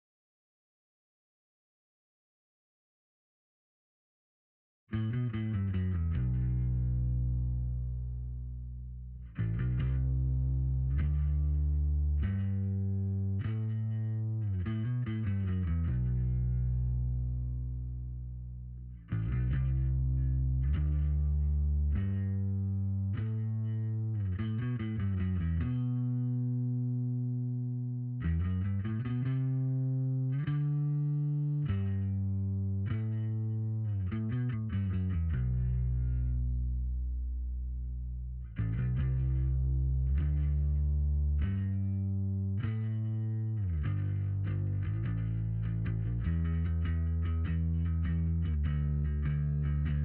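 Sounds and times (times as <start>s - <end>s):
bass: 4.9s - 50.0s.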